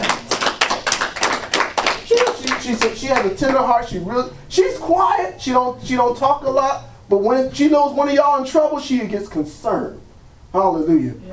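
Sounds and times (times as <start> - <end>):
congregation clapping in a church service: 0.0 - 3.8
speech: 2.7 - 11.3.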